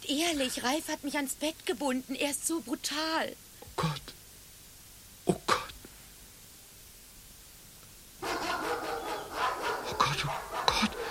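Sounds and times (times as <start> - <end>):
speech: 0.1 - 4.2
dogs barking and yapping, jumping up against the walls of a house: 8.2 - 11.0.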